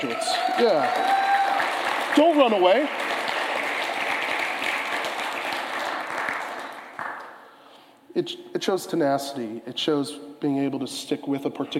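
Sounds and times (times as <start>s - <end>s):
speech: 0.0s - 1.2s, 2.1s - 3.0s, 8.2s - 11.7s
round of applause: 0.0s - 7.5s.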